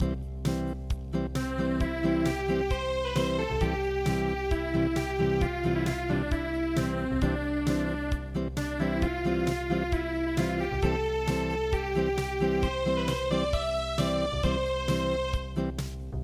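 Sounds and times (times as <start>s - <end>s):
acoustic music: 0.0s - 16.2s.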